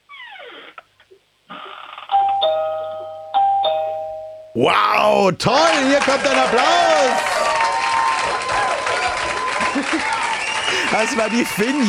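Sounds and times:
doorbell ringing: 2.1 - 4.7
speech: 4.6 - 7.4, 10.9 - 11.8
laughter: 4.6 - 11.8.

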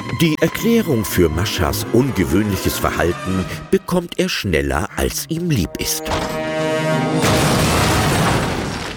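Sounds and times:
speech: 0.2 - 6.4
cooking pot exploding: 7.3 - 8.9.

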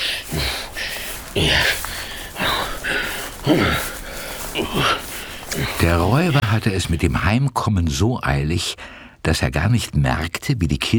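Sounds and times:
man puffing and panting: 0.0 - 6.6
speech: 5.9 - 10.9.

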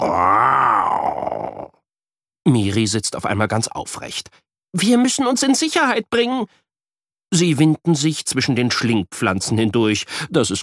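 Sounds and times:
person imitating an animal's growl: 0.0 - 1.8
speech: 2.5 - 6.6, 7.3 - 10.6.

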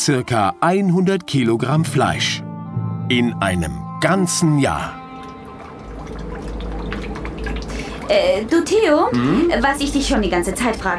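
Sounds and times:
speech: 0.0 - 2.5, 3.1 - 5.0, 8.1 - 10.9
water dripping and trickling: 4.0 - 10.8
low constant rumble: 4.9 - 10.9.

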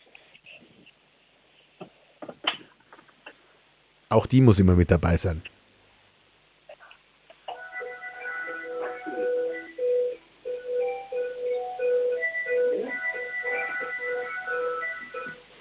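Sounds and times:
speech: 4.1 - 5.6
doorbell playing a whole melody: 7.6 - 15.4.

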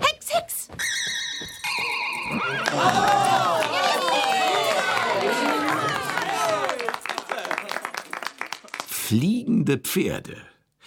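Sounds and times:
circus crowd cheering and clapping: 1.8 - 8.9
shouts: 2.5 - 6.9
speech: 9.1 - 10.5.

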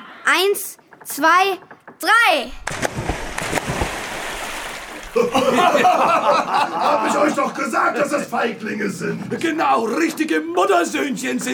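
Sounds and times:
speech: 0.3 - 2.7, 5.2 - 11.5
people jumping into water: 2.6 - 6.3
laughter: 5.0 - 8.2.

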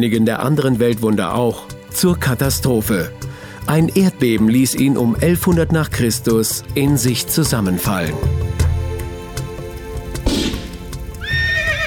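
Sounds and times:
speech: 0.0 - 8.6
hooves clopping: 7.9 - 11.8
spooked horses neighing: 11.0 - 11.8.

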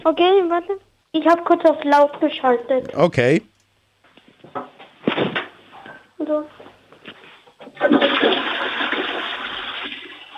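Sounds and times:
speech: 0.0 - 3.5, 6.2 - 6.6, 7.7 - 8.5
toilet flushing: 7.7 - 10.3.

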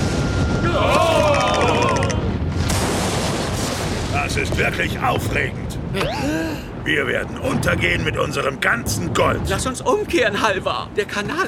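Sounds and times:
thunder from a storm: 0.0 - 5.9, 6.7 - 9.8
speech: 4.4 - 11.4.

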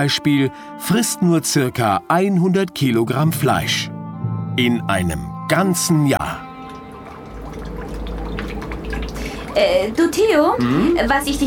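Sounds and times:
speech: 0.0 - 3.9, 4.6 - 6.4, 9.6 - 11.4
water dripping and leaking into submarine: 5.2 - 11.4.

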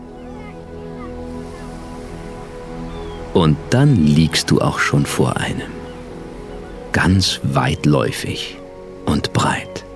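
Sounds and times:
soft ocean surf rushing: 0.0 - 7.5
speech: 3.4 - 5.8, 6.9 - 9.6.

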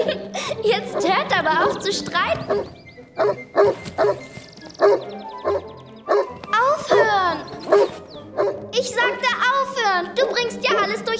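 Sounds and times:
laughter: 0.0 - 5.3
speech: 0.6 - 11.1
thin high-pitched bird chirps: 0.8 - 11.1
St. Bernard barking: 2.4 - 4.2, 4.8 - 6.3, 7.7 - 8.6.

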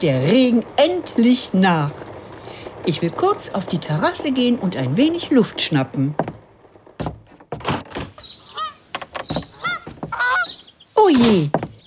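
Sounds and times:
speech: 0.0 - 2.0, 2.8 - 6.3, 11.1 - 11.6
greylag gander honking: 9.5 - 10.7.

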